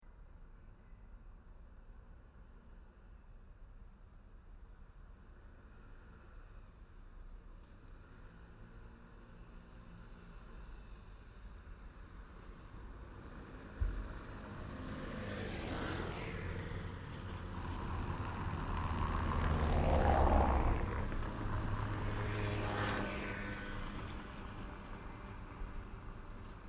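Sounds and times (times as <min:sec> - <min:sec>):
cars passing on a cobblestone road in Paris France: 0:07.8 - 0:26.6
motorbikes passing on a cobblestone road in Paris France: 0:13.4 - 0:26.6.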